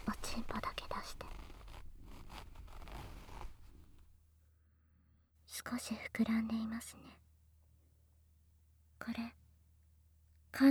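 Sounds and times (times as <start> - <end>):
zipper on a pair of trousers pulled open: 0.0 - 4.1
speech: 5.7 - 7.2, 9.0 - 9.4.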